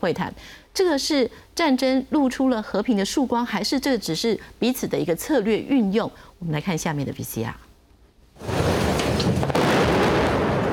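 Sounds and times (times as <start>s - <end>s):
speech: 0.0s - 7.6s
explosion in war footage: 8.4s - 10.7s.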